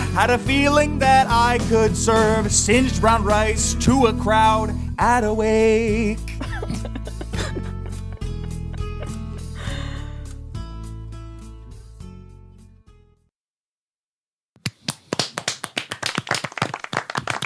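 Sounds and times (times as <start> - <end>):
speech: 0.2 - 6.4
laughter: 6.4 - 10.0
small group clapping hands: 14.6 - 17.4.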